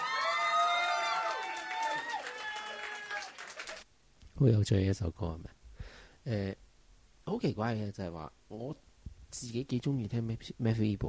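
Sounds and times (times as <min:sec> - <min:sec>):
crowd cheering wildly: 0:00.0 - 0:03.8
speech: 0:04.4 - 0:05.6, 0:06.2 - 0:06.6, 0:07.3 - 0:11.0.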